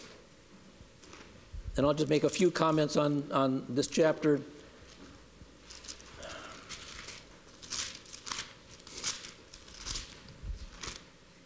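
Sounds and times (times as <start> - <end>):
Bible pages being turned: 0.0 - 0.2, 1.0 - 1.4, 4.8 - 11.1
speech: 1.8 - 4.6.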